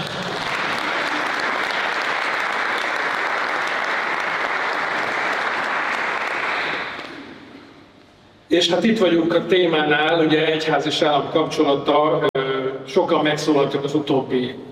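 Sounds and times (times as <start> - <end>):
live audience applause: 0.0 - 7.4
speech: 8.5 - 12.3, 13.0 - 14.6.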